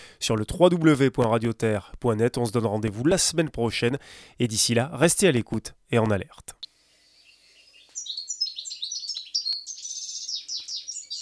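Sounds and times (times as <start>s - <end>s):
speech: 0.2s - 6.6s
European goldfinch singing: 7.1s - 11.1s.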